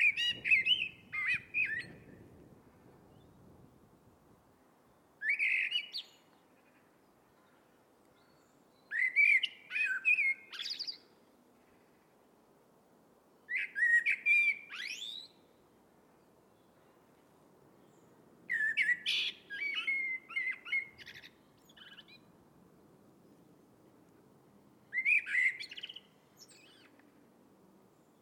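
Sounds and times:
Eurasian blackbird song: 0.0 - 2.4, 4.9 - 12.0, 13.5 - 15.6, 17.7 - 22.3, 24.8 - 27.1.

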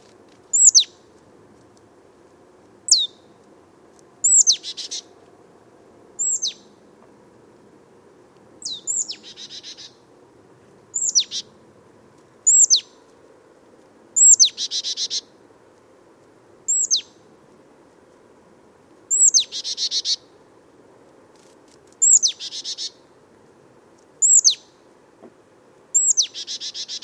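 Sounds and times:
marsh tit calling: 0.5 - 0.9, 2.9 - 3.3, 4.2 - 5.1, 6.2 - 6.8, 8.6 - 10.0, 10.9 - 11.5, 12.4 - 12.9, 14.2 - 15.3, 16.7 - 17.2, 19.1 - 20.3, 22.0 - 23.0, 24.2 - 24.7, 25.9 - 27.0.

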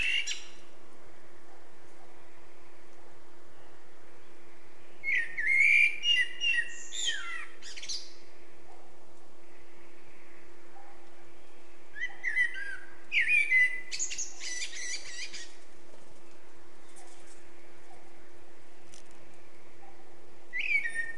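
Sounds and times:
Eurasian blackbird singing: 0.0 - 0.6, 3.5 - 8.3, 9.5 - 15.6, 19.8 - 21.1
low constant hum: 0.0 - 21.1.

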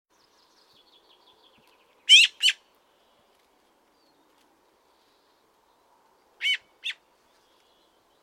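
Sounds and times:
Eurasian magpie harsh rasping calls: 2.1 - 2.6, 6.4 - 7.0.

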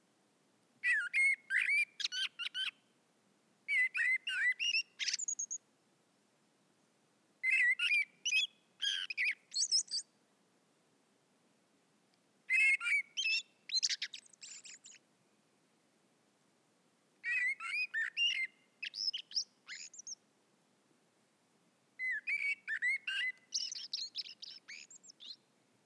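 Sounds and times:
common blackbird song: 0.8 - 2.9, 3.7 - 5.7, 7.4 - 10.1, 12.5 - 15.5, 17.2 - 20.2, 22.0 - 25.6.

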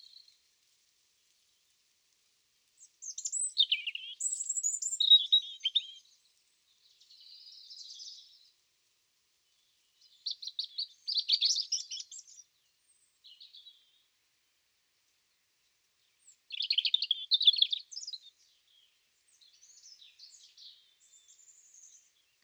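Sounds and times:
European robin song: 3.0 - 6.1, 10.0 - 13.9, 16.2 - 22.4.

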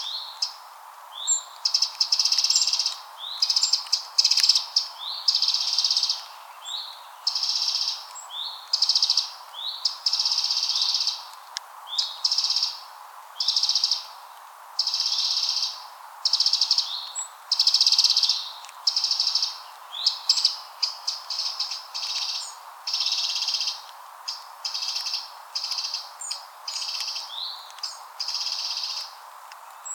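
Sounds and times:
Eurasian wren trilling song: 0.0 - 14.2, 14.8 - 29.9
background hiss: 0.0 - 29.9.

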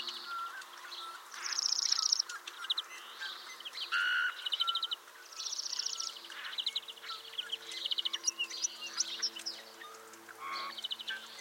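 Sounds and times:
Eurasian bullfinch (Pyrrhula pyrrhula) giving soft low piping whistles: 0.0 - 11.3.

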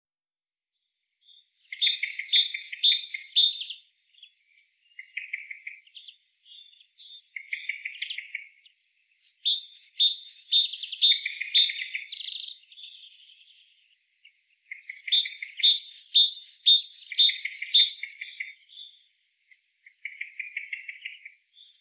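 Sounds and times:
great tit calls: 1.0 - 21.7.

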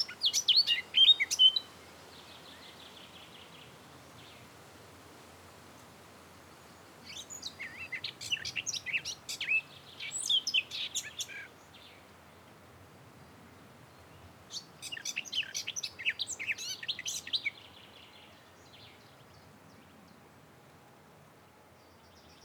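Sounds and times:
Eurasian blackcap song: 0.0 - 4.4, 7.0 - 12.0, 14.5 - 19.0.

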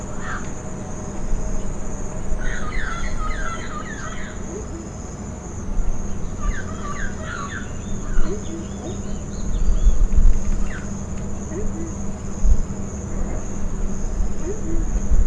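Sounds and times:
low rumble and hum: 0.0 - 15.2
bird chirps: 2.4 - 5.2, 6.0 - 12.4, 13.4 - 15.1.

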